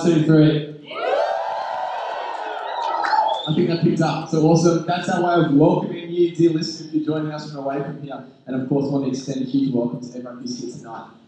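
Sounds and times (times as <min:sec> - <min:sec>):
speech: 0:00.0 - 0:01.0, 0:03.4 - 0:11.2
audience cheering: 0:00.9 - 0:04.1.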